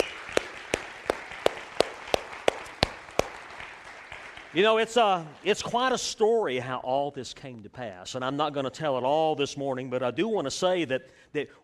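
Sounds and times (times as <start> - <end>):
audience clapping in unison: 0.0 - 6.0
speech: 4.5 - 11.6.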